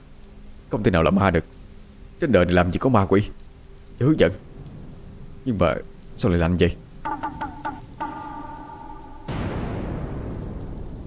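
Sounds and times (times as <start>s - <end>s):
speech: 0.7s - 1.6s, 2.2s - 3.4s, 4.0s - 4.5s, 5.4s - 7.4s
rolling thunderclaps: 7.1s - 11.0s.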